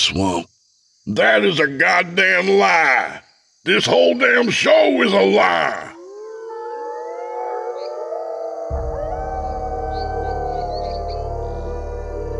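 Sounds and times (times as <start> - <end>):
speech: 0.0 - 6.0
chorus of howling from a forest: 5.3 - 12.3.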